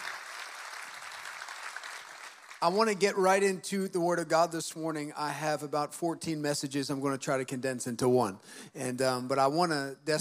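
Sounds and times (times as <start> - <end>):
audience applause: 0.0 - 2.8
speech: 2.6 - 10.2.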